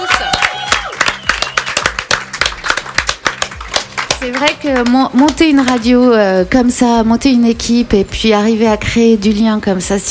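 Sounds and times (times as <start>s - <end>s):
rhythmic clapping: 0.0s - 6.2s
speech: 4.2s - 10.0s.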